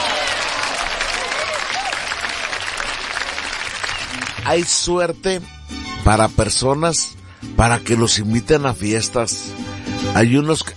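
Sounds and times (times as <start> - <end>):
applause: 0.0 - 4.9
speech: 4.4 - 10.7.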